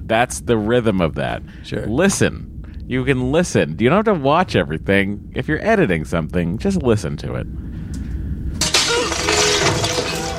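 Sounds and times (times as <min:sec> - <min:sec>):
speech: 0:00.1 - 0:07.7
pot shattering: 0:08.6 - 0:10.3
shards clattering: 0:08.6 - 0:10.3.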